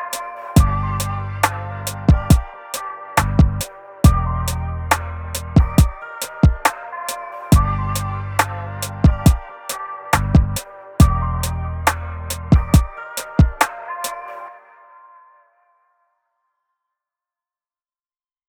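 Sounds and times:
lofi beat: 0.0 - 14.4.

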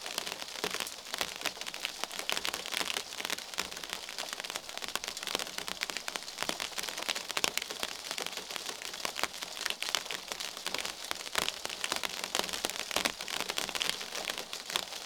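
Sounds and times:
rain on a surface: 0.0 - 15.0.

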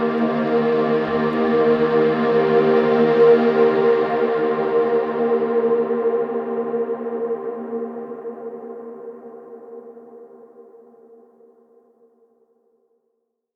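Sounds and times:
spa relaxation music: 0.0 - 8.1.

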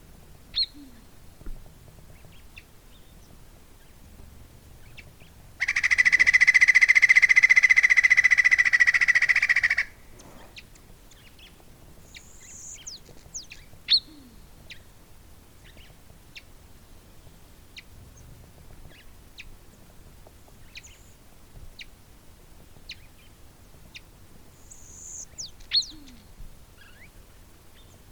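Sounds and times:
Andean flicker Colaptes rupicola trilling call: 0.5 - 0.9, 4.9 - 11.5, 12.1 - 14.8, 24.7 - 27.1.

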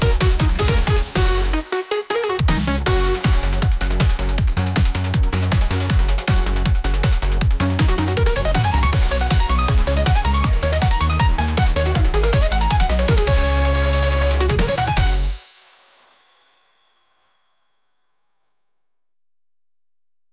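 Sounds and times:
funk rhythm: 0.0 - 15.4.

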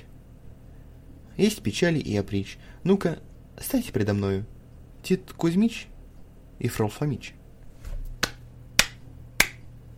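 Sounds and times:
speech: 1.4 - 5.9, 6.6 - 7.4
hands clapping: 8.2 - 9.6.

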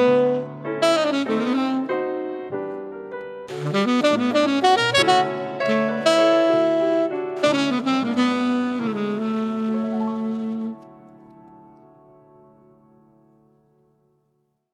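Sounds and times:
Italian restaurant jazz with tenor saxophone: 0.0 - 11.2.

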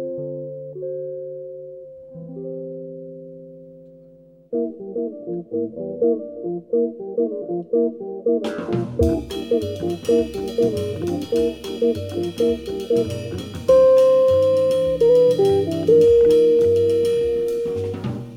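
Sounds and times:
Hammond organ trio playing: 4.6 - 18.3.

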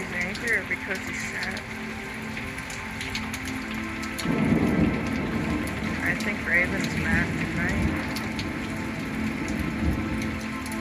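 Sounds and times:
rain: 0.0 - 10.7
speech: 0.5 - 2.0, 6.1 - 8.2
thunder: 4.2 - 5.9.

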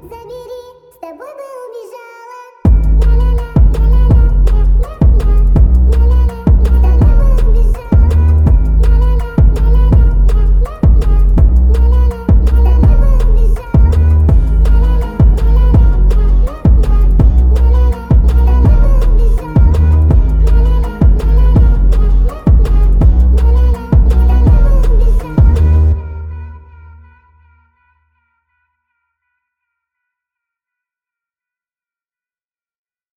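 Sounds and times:
slowed reverb music: 2.7 - 27.5.

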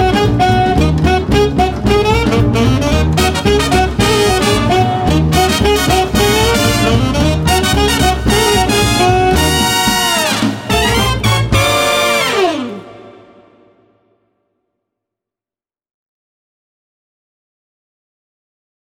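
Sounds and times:
swing combo playing: 0.0 - 13.3.

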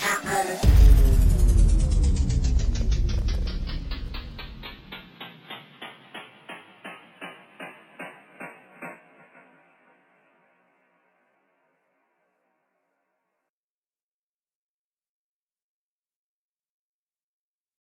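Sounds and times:
bass: 0.0 - 5.2.

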